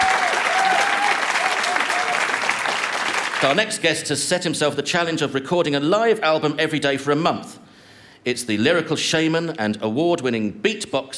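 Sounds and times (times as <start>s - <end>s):
audience applause for two guests on a live comedy show: 0.0s - 3.6s
speech: 3.4s - 7.6s, 8.2s - 11.1s.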